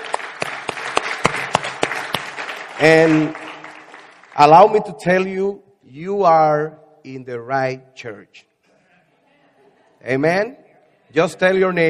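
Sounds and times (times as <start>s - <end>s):
audience clapping hands: 0.0s - 5.0s
speech: 2.8s - 3.4s, 4.4s - 8.5s, 10.0s - 11.8s.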